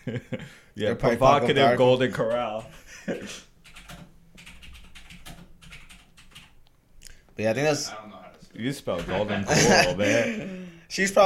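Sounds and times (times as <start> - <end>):
speech: 0.0 - 4.0, 7.4 - 11.2
typing a search on a computer keyboard: 2.2 - 2.8, 3.6 - 6.6
laughter: 9.1 - 10.8.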